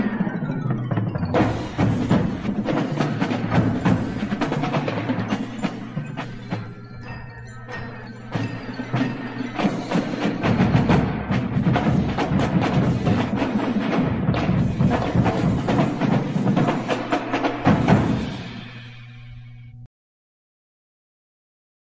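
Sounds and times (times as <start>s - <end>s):
percussion solo: 0.0s - 19.6s.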